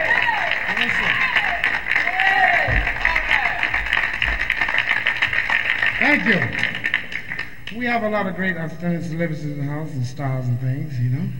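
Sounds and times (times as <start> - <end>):
audience applause for the band: 0.0 - 7.8
speech: 6.2 - 6.6, 7.8 - 11.3.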